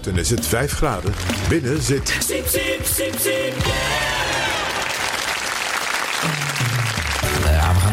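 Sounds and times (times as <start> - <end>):
speech: 0.0 - 4.4
applause: 1.0 - 1.6, 3.5 - 7.9.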